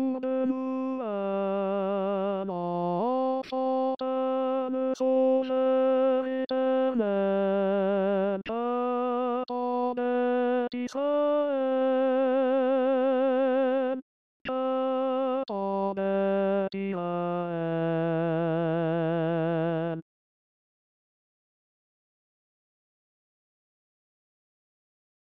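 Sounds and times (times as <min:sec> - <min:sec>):
tenor singing: 0:00.0 - 0:20.0.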